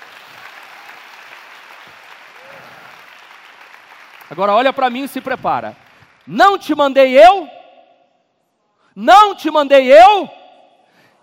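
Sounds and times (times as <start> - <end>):
audience applause: 0.0 - 6.2
speech: 4.3 - 7.6, 9.0 - 10.4.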